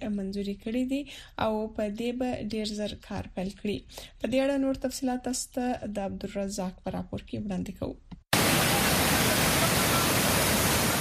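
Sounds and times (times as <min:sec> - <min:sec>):
speech: 0:00.1 - 0:08.1
natural waterfall in Khyber Pakhtunkhwa roaring: 0:08.4 - 0:11.0.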